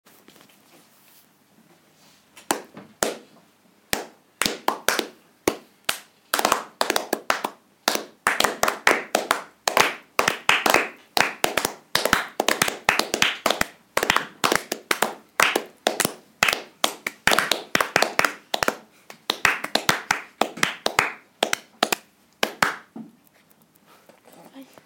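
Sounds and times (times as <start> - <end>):
clapping: 3.9 - 22.9.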